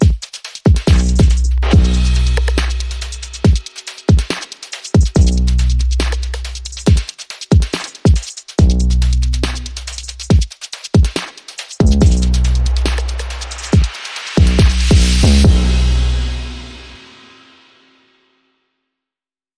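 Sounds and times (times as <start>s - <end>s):
drums: 0.0s - 18.1s
bass: 0.9s - 3.5s, 5.2s - 6.9s, 8.6s - 10.3s, 11.8s - 13.8s, 14.4s - 17.0s.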